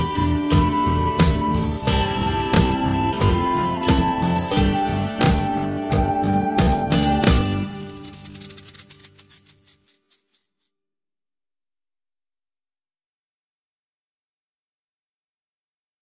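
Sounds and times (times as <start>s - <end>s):
music melody: 0.0s - 8.6s.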